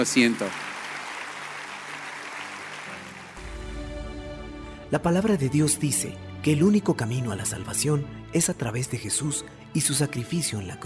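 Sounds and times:
speech: 0.0s - 0.7s, 4.9s - 10.8s
audience applause: 0.0s - 3.5s.

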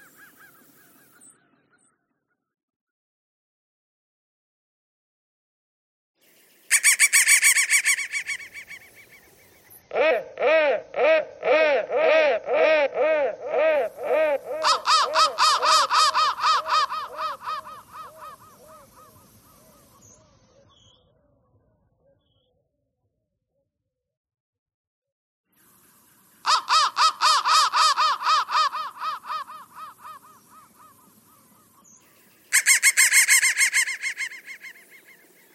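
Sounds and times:
crow thread noise: 6.7s - 20.0s, 26.4s - 31.8s, 32.5s - 35.5s.

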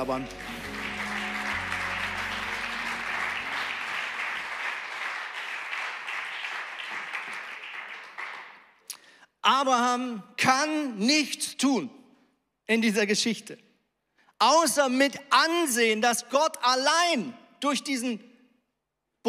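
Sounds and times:
speech: 0.0s - 0.6s, 9.5s - 12.0s, 12.7s - 13.7s, 14.4s - 18.3s
audience applause: 0.0s - 8.6s.

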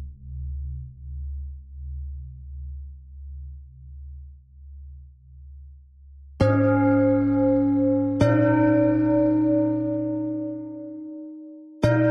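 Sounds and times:
bell: 6.4s - 12.0s.

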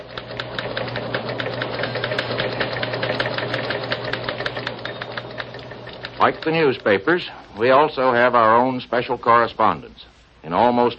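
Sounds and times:
typewriters clattering in the newsroom: 0.2s - 7.0s
speech: 6.2s - 10.9s.

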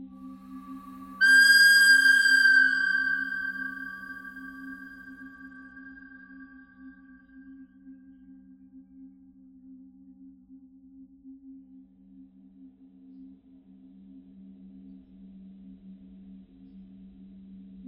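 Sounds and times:
bird crying: 1.2s - 6.9s.

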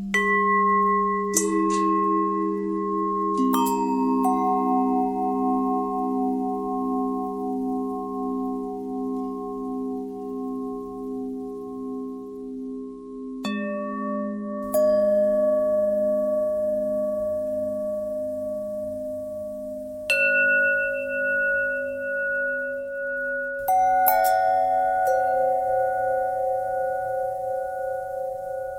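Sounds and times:
bells bendtwist: 0.1s - 28.7s.

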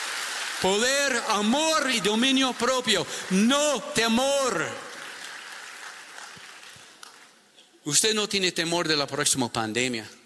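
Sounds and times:
church congregation applauding: 0.0s - 7.5s
speech: 0.6s - 4.9s, 7.8s - 10.2s.

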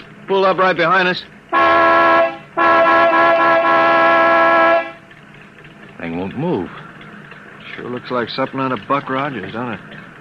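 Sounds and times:
speech: 0.3s - 2.0s, 6.0s - 6.8s, 7.8s - 10.0s
truck horn honking: 1.5s - 5.0s.

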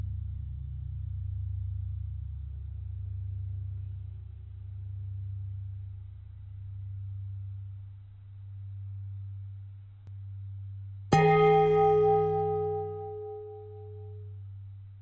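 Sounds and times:
long bell ringing: 11.1s - 14.1s.

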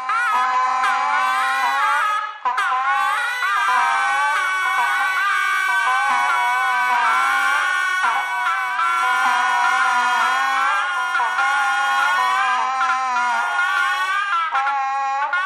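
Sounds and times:
bagpipe on radio: 0.0s - 15.4s.

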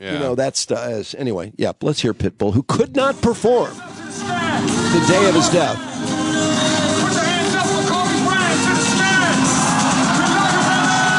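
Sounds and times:
speech: 0.0s - 6.4s
concert crowd cheering: 4.0s - 11.1s.

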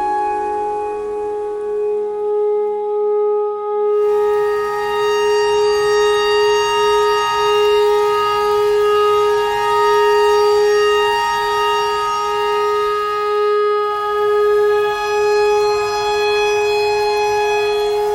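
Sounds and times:
clarinet notes in E pentatonic imitating a tornado siren: 0.0s - 18.1s.

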